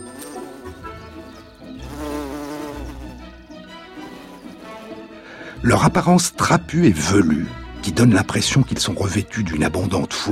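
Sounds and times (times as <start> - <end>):
bumblebee buzzing in flight: 0.0 - 5.2
speech: 5.6 - 10.2.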